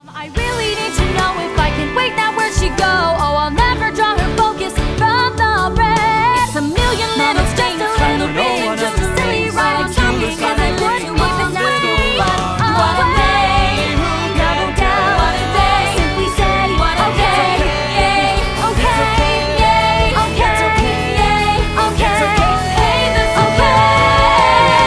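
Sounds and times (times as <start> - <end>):
person singing: 0.0 - 24.8.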